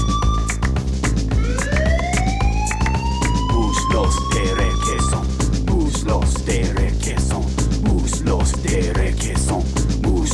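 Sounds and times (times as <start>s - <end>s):
siren wailing: 0.0s - 5.5s
heavy thumping beat: 0.0s - 10.3s.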